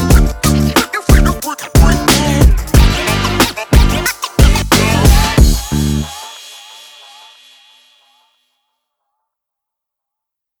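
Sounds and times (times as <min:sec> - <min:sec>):
hip hop background music: 0:00.0 - 0:07.9.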